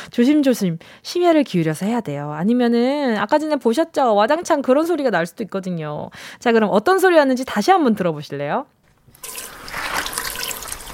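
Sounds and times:
speech: 0.2 - 9.6
washing dishes under running water: 9.1 - 10.9.

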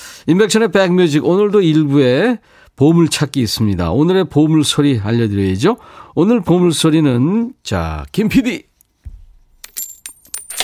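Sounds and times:
speech: 0.2 - 8.7
coins dropping: 9.6 - 10.6.

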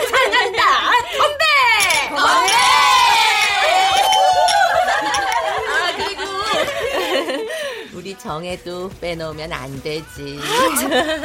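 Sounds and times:
laughter: 0.0 - 1.0, 4.8 - 7.7, 10.4 - 11.2
chatter: 0.0 - 7.6
group cheering and whooping during a toast: 2.0 - 6.4
speech: 8.3 - 11.2.

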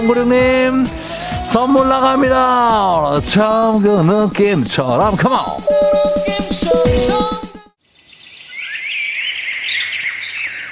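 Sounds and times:
speech: 0.0 - 7.3
tonal pulsing music: 4.2 - 7.7
forest birds singing: 7.9 - 10.6.

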